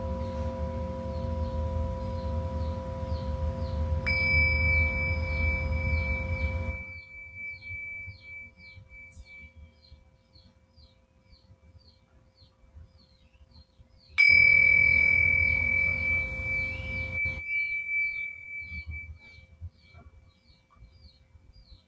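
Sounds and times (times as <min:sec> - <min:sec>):
Tibetan singing bowls ringing: 0:00.0 - 0:09.7, 0:14.2 - 0:19.5
soft chirps: 0:00.0 - 0:21.8.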